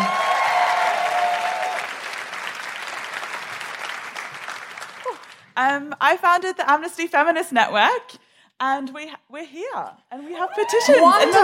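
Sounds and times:
people whooping: 0:00.0 - 0:02.2, 0:10.4 - 0:11.4
audience applause: 0:00.0 - 0:05.5
speech: 0:05.6 - 0:11.4.

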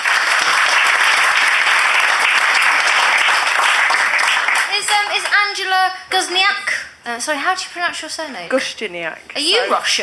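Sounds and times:
audience applause: 0:00.0 - 0:05.4
speech: 0:05.1 - 0:10.0.

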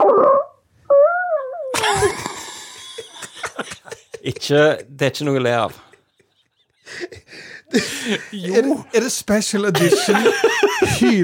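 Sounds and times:
fart: 0:00.0 - 0:01.9
laughter: 0:01.8 - 0:08.8, 0:09.6 - 0:11.2
speech: 0:04.2 - 0:05.9, 0:06.9 - 0:11.2.

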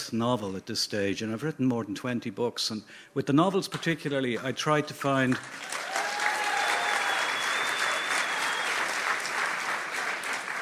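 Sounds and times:
speech: 0:00.1 - 0:05.9
people clapping: 0:05.2 - 0:10.6.

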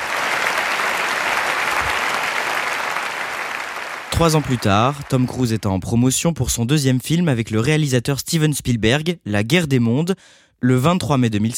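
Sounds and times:
large audience applauding loudly in a hall: 0:00.0 - 0:05.7
speech: 0:04.2 - 0:11.5.

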